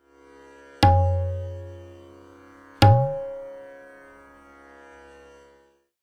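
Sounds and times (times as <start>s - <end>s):
bol syllable dha: 0.8s - 2.0s, 2.8s - 3.6s.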